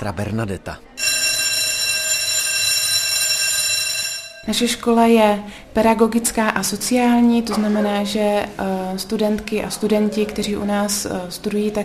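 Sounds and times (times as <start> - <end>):
speech: 0.0 - 1.1, 4.4 - 11.8
school corridor bell ringing: 1.0 - 4.9.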